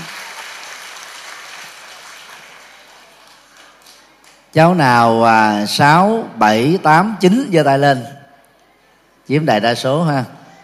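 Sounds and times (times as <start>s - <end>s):
audience applause: 0.0s - 4.5s
speech: 4.5s - 8.2s, 9.3s - 10.4s.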